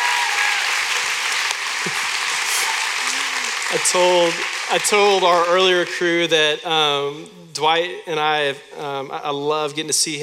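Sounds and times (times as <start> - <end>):
audience round of applause: 0.0 - 6.0
speech: 3.7 - 10.2.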